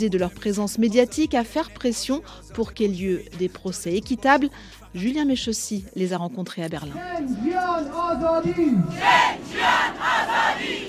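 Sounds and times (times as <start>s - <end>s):
speech: 0.0s - 10.8s
protest crowd chanting slogans: 6.9s - 10.8s.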